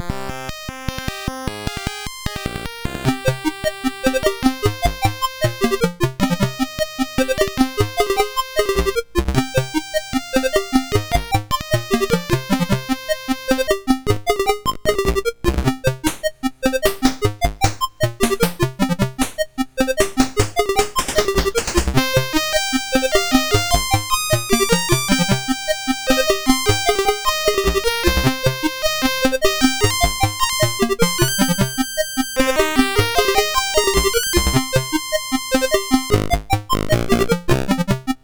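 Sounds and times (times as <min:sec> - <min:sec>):
MOS6581R4 SID chip music: 0:00.0 - 0:38.2.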